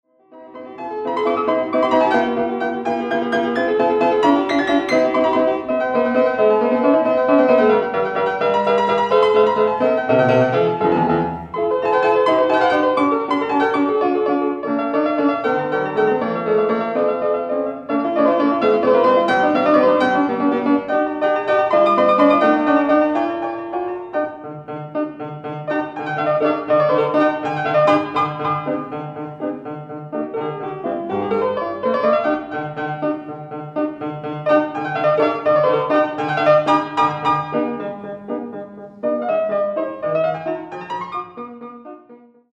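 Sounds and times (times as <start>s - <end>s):
sonatas: 0.2s - 42.4s.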